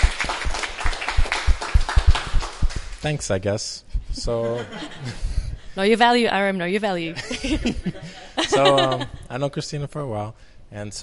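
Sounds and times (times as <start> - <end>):
audience applause at a live talk: 0.0 - 3.0
speech: 3.0 - 11.0
laughter: 4.2 - 5.4, 7.1 - 9.3.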